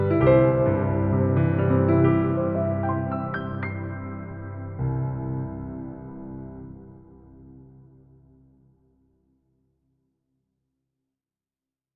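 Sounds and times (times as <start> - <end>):
piano improvisation: 0.0 - 8.4.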